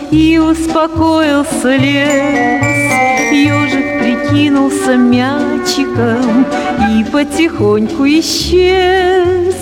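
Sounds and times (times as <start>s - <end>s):
speech: 0.1s - 9.6s
chiming instrumental intro to a Soviet lullaby song: 2.1s - 5.5s.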